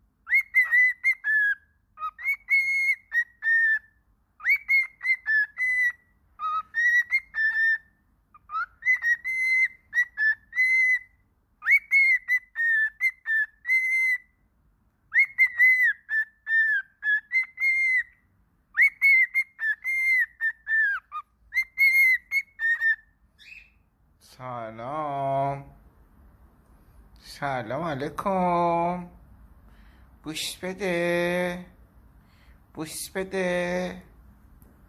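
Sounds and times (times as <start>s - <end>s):
cockatiel whistling: 0.2s - 14.4s, 15.1s - 23.9s
speech: 24.4s - 25.0s, 27.4s - 29.2s, 30.2s - 31.7s, 32.8s - 34.1s.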